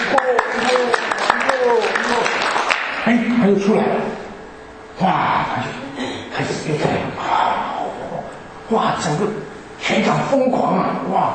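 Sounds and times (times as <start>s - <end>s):
audience clapping along at a concert encore call: 0.0s - 3.0s
speech: 3.1s - 4.2s, 5.0s - 7.3s, 8.7s - 11.3s.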